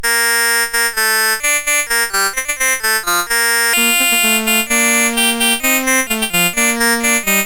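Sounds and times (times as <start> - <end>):
allemande on a CSG8580R5 sound chip: 0.0 - 7.4.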